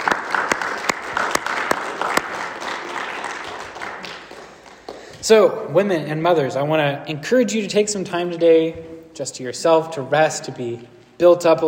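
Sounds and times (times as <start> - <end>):
applause: 0.0 - 5.2
speech: 5.3 - 11.6.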